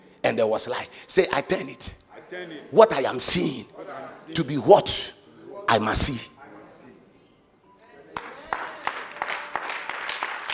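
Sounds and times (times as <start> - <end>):
speech: 0.3 - 6.3
unenthusiastic audience clapping: 8.2 - 10.5.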